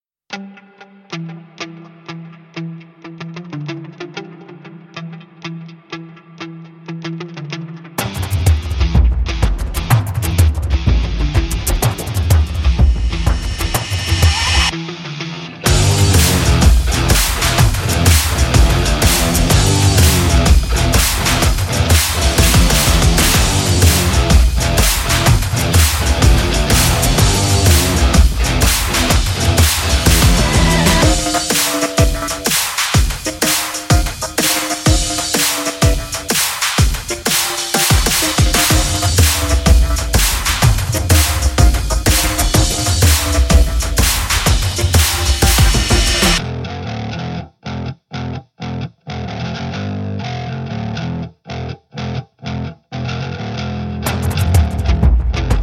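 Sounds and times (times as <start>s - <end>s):
rage riff: 0.3s - 55.6s.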